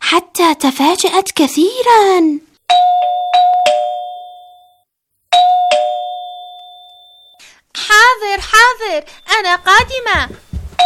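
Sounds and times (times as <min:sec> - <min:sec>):
speech: 0:00.1 - 0:03.0, 0:07.8 - 0:10.4
doorbell ringing: 0:02.7 - 0:07.4.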